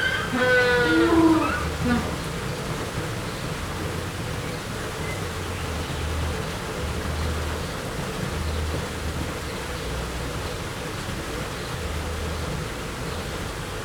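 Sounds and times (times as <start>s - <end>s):
adult spectacled penguins at a zoo: 0.0s - 2.4s
waterfall at a zoo: 0.0s - 13.8s.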